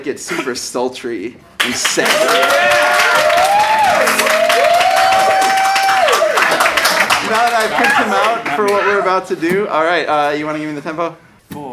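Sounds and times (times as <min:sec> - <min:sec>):
speech: 0:00.0 - 0:04.4, 0:07.3 - 0:11.3
crowd applauding: 0:01.6 - 0:09.0.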